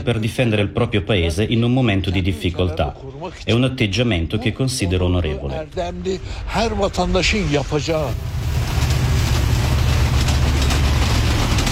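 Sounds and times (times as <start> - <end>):
speech: 0.0 - 8.8
bustle at a busy railway station: 4.0 - 11.6.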